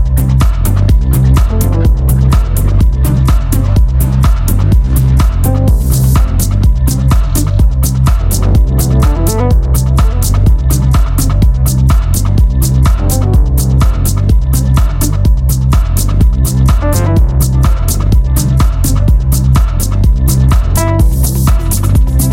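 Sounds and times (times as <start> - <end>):
music with fast percussion, deep bass line and melodic layer: 0.0 - 22.3.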